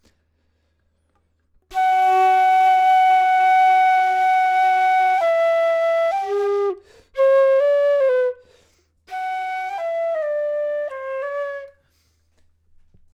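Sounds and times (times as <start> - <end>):
flute: 1.7 - 11.8.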